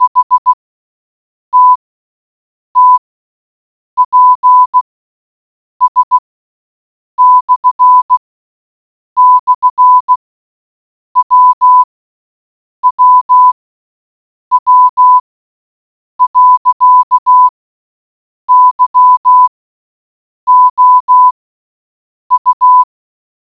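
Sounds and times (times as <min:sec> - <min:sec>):
morse code beeps: 0:00.0 - 0:00.5, 0:01.6 - 0:01.8, 0:02.8 - 0:03.0, 0:04.0 - 0:04.8, 0:05.8 - 0:06.2, 0:07.2 - 0:08.2, 0:09.2 - 0:10.2, 0:11.2 - 0:11.9, 0:12.8 - 0:13.6, 0:14.5 - 0:15.2, 0:16.2 - 0:17.5, 0:18.5 - 0:19.5, 0:20.5 - 0:21.4, 0:22.3 - 0:22.9.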